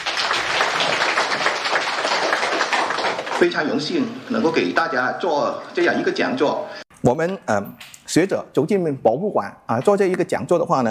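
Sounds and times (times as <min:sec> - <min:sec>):
audience applause welcoming a speaker: 0:00.0 - 0:03.7
speech: 0:03.4 - 0:10.8.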